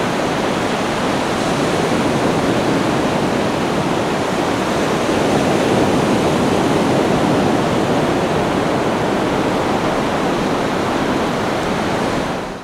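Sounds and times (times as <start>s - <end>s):
heavy ocean surf waves at 20m distance: 0.0s - 12.6s.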